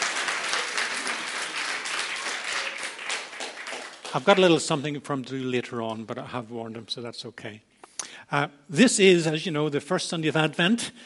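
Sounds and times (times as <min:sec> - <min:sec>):
audience applause welcoming a church pastor at a Sunday service: 0:00.0 - 0:04.8
speech: 0:04.1 - 0:07.7, 0:08.3 - 0:11.0.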